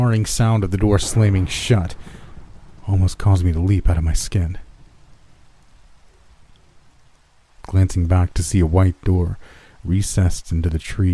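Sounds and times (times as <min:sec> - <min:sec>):
speech: 0:00.0 - 0:02.2, 0:02.9 - 0:04.6, 0:07.7 - 0:11.1
steady rain falling: 0:00.0 - 0:11.1.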